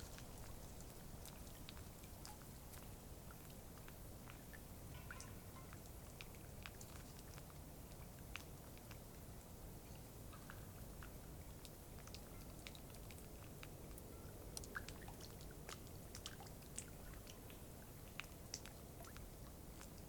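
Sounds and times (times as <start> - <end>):
faint breeze blowing through the treetops beside Taylor Lake: 0.0 - 20.0.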